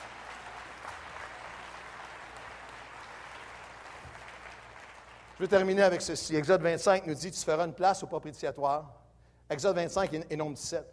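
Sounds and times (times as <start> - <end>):
audience applauding: 0.0 - 6.2
speech: 5.4 - 10.9.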